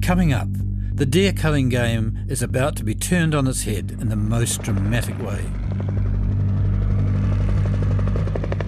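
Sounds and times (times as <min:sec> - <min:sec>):
speech: 0:00.1 - 0:05.6
helicopter rotors thumping over engine hum: 0:04.1 - 0:08.6.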